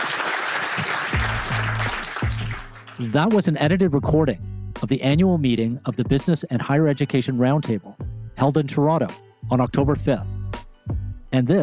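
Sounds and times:
audience applause for a panel: 0.0 - 3.2
speech: 3.0 - 10.4, 11.3 - 11.6.

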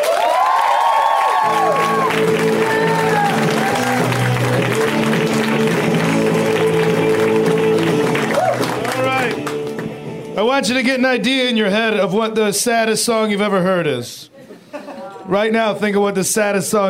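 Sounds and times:
comedy show audience clapping welcoming a comedian: 0.0 - 10.4
speech: 10.6 - 14.3, 15.3 - 16.8.

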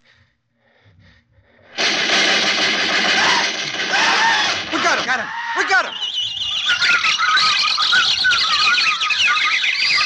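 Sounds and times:
rifle shots: 1.8 - 5.1
parrots and macaws screaming: 3.0 - 10.0.

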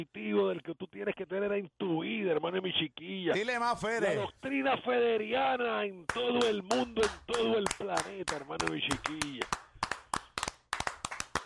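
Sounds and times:
speech: 0.0 - 9.6
hand clapping: 6.1 - 11.4.

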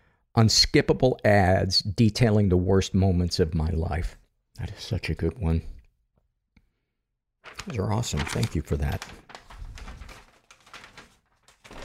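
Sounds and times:
speech: 0.4 - 5.8, 7.6 - 9.3
paper rattling and crinkling: 7.4 - 11.8.

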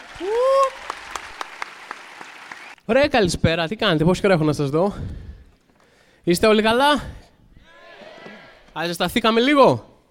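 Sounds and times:
audience applause: 0.0 - 2.8
speech: 0.2 - 0.4, 2.9 - 5.3, 6.2 - 7.2, 8.8 - 9.9.

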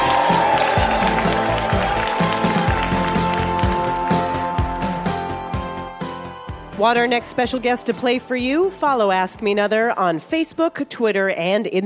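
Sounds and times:
audience applause and cheering on a live comedy quiz show: 0.0 - 6.3
speech: 6.8 - 11.8.

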